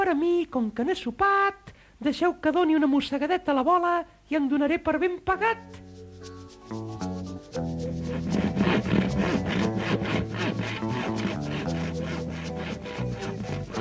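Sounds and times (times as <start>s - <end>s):
speech: 0.1s - 10.8s
sustained musical backing: 5.6s - 13.7s
saw cutting through wood: 8.0s - 13.7s.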